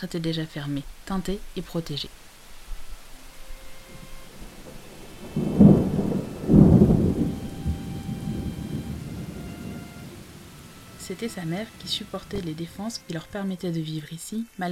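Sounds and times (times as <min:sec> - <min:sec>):
speech: 0:00.0 - 0:02.3, 0:11.1 - 0:14.7
heavy rain in a thunderstorm: 0:00.0 - 0:14.7
thunder rolling: 0:04.3 - 0:12.9.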